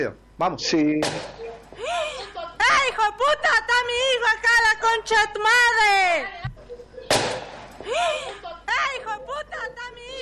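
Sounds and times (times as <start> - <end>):
speech: 0.0 - 1.9, 3.1 - 6.4
gunshot in a played video: 1.0 - 1.4, 7.1 - 7.7
laughter: 1.3 - 3.0, 7.8 - 9.7.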